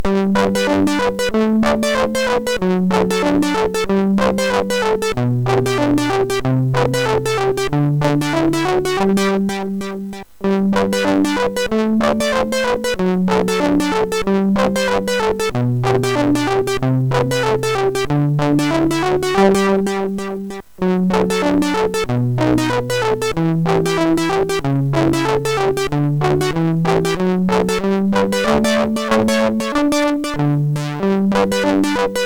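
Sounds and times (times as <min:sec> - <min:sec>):
SID MOS6581R4 chip instrumental music: 0:00.0 - 0:32.2.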